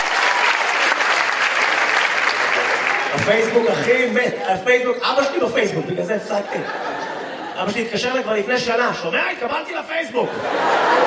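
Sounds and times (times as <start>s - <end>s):
audience applause: 0.0s - 4.5s
speech: 3.2s - 7.0s, 7.6s - 11.0s
laughter: 5.9s - 8.3s, 10.2s - 11.0s.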